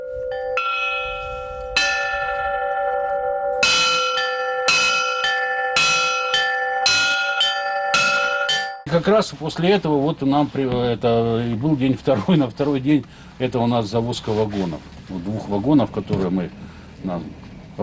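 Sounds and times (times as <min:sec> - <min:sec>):
bells made from old gas cylinders ringing: 0:00.0 - 0:08.9
speech: 0:08.9 - 0:17.8.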